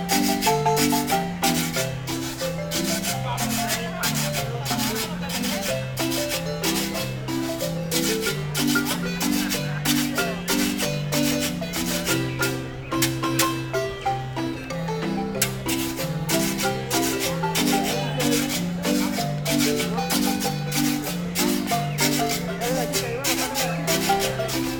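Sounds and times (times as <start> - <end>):
marimba: 0.0 - 24.7.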